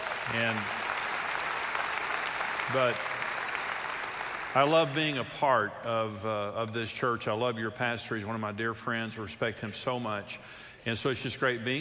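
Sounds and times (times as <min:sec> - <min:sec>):
applause from a church congregation: 0:00.0 - 0:05.2
speech: 0:00.3 - 0:00.8, 0:02.7 - 0:03.2, 0:04.5 - 0:11.8.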